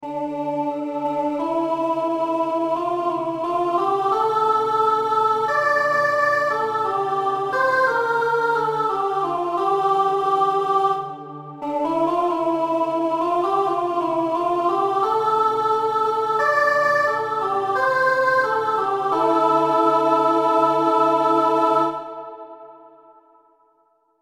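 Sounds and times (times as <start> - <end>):
soprano singing: 0.0 - 23.5.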